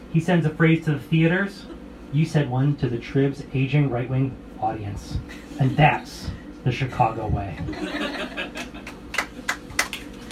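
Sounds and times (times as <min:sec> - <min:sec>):
speech: 0:00.1 - 0:08.6
laughter: 0:05.3 - 0:06.3, 0:07.4 - 0:09.5
scattered handclaps from an audience: 0:08.8 - 0:10.3.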